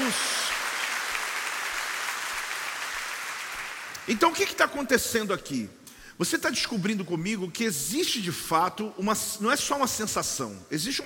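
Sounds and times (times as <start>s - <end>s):
audience applause: 0.0s - 4.1s
speech: 4.0s - 11.0s.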